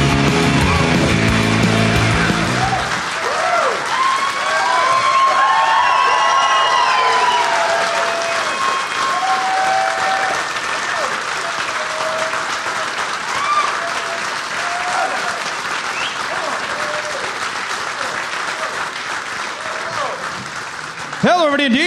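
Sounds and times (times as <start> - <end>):
live comedy-show audience at Parlor Live in Seattle applauding the host: 0.0 - 21.8
whistles: 15.9 - 16.3.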